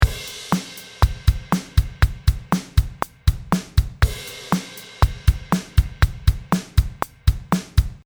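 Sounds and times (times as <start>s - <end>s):
drummer playing: 0.0s - 8.0s.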